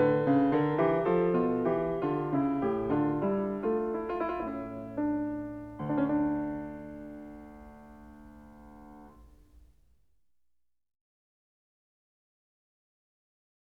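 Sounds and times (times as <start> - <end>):
keyboard fugue in D minor: 0.0 - 9.5.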